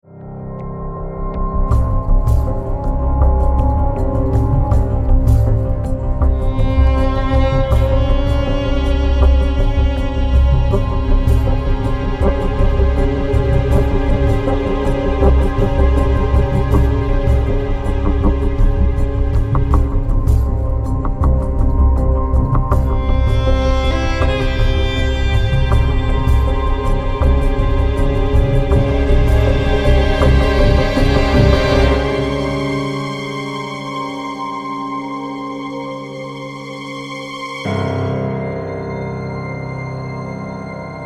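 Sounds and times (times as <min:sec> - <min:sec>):
ethnic mystery investigation music: 0:00.0 - 0:41.0.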